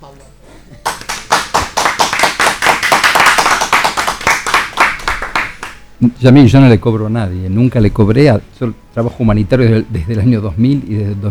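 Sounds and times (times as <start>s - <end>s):
hand clapping: 0.8s - 5.8s
speech: 6.0s - 11.2s.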